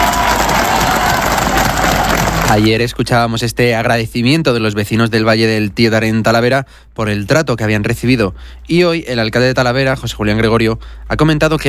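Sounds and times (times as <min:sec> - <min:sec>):
crowd applauding and cheering: 0:00.0 - 0:02.7
speech: 0:02.5 - 0:11.6.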